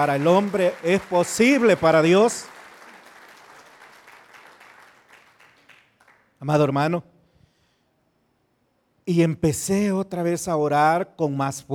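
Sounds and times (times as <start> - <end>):
speech: 0.0 - 2.6, 6.4 - 7.1, 9.1 - 11.7
audience applause: 0.0 - 6.3.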